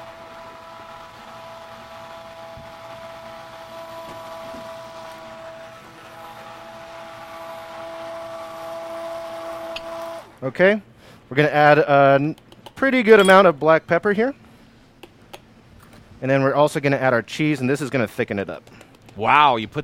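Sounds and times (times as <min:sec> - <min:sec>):
immersion blender running: 0:00.0 - 0:10.4
speech: 0:10.4 - 0:14.4, 0:16.2 - 0:19.8.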